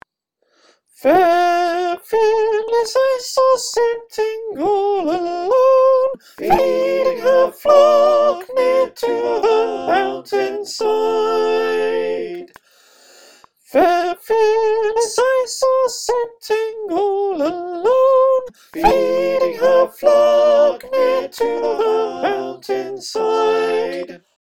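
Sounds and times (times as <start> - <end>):
soprano choir singing: 1.0 - 12.6, 13.7 - 24.3.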